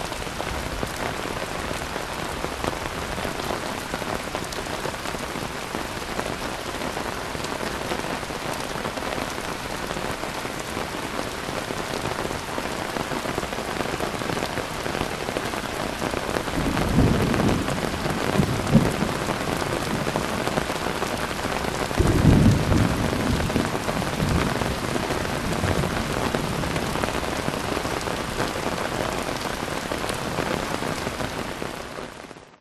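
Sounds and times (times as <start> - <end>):
heavy rain on an umbrella in Kuala Lumpur Malaysia: 0.0 - 32.5
thunder in Kuala Lumpur Malaysia: 16.6 - 20.7, 21.9 - 27.1.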